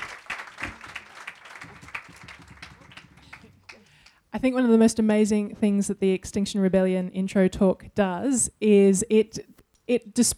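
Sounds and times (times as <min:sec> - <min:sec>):
audience applause: 0:00.0 - 0:04.1
speech: 0:04.4 - 0:10.3.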